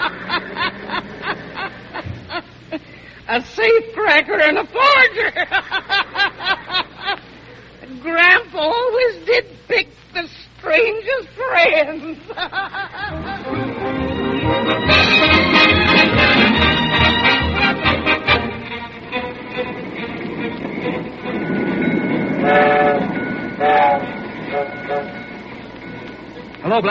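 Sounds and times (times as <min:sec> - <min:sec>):
laughter: 0:00.0 - 0:03.0, 0:04.3 - 0:07.4, 0:11.8 - 0:14.0
speech: 0:03.3 - 0:06.0, 0:08.0 - 0:09.9
freight train rolling along the tracks: 0:13.1 - 0:26.8
wavering high-pitched whistle: 0:21.3 - 0:26.4.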